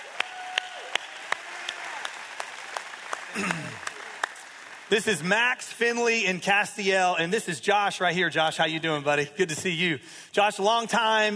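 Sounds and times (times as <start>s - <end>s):
audience applause: 0.0s - 5.7s
speech: 4.9s - 11.3s.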